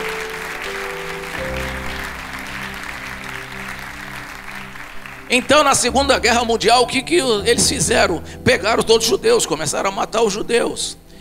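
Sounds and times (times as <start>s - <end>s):
large crowd applauding: 0.0s - 7.4s
sustained organ or keyboard tones: 0.0s - 11.1s
speech: 5.3s - 11.0s.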